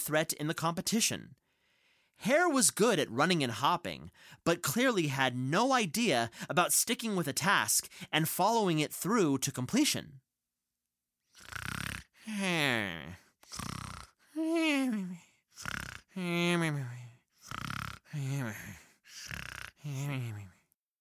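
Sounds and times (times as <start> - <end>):
speech: 0.0 - 1.4, 2.2 - 10.2, 11.4 - 13.8, 14.5 - 20.5
voice imitating loud snoring: 11.3 - 20.6.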